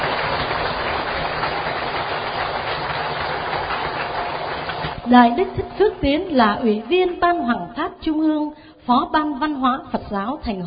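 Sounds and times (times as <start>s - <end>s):
large crowd applauding: 0.0s - 7.2s
speech: 5.1s - 10.6s.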